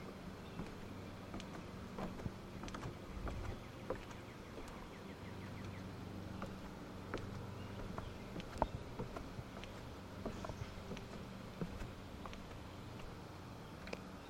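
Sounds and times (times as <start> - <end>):
faint buzzing hum: 0.0 - 14.2
footsteps going down stairs: 0.5 - 4.8, 6.3 - 13.1.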